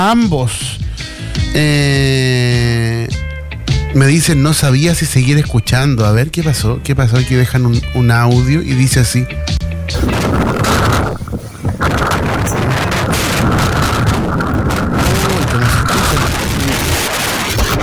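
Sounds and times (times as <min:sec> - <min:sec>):
speech: 0:00.0 - 0:00.8, 0:01.5 - 0:03.2, 0:03.9 - 0:10.6
strong wind roaring through a city: 0:09.9 - 0:17.8.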